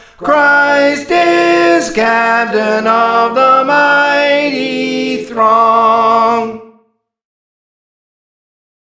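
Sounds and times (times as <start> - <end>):
soprano singing: 0.0 - 6.8.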